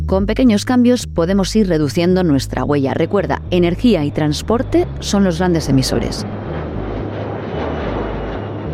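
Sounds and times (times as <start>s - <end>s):
speech: 0.1s - 6.4s
airplane flying overhead: 2.7s - 8.7s.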